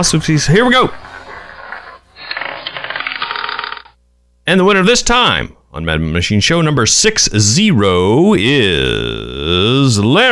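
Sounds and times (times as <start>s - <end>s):
speech: 0.0s - 1.0s, 4.5s - 10.2s
roulette wheel spinning with a whirring swish: 0.0s - 4.0s
marble rolling and rattling around a roulette wheel track: 2.3s - 4.0s.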